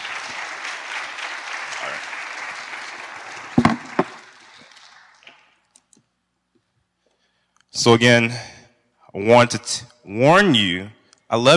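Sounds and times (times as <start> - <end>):
audience applause: 0.0 - 5.4
speech: 7.8 - 8.5, 9.2 - 11.5.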